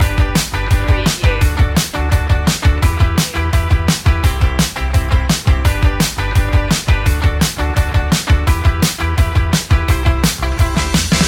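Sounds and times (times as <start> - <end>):
indie music loop: 0.0 - 11.2.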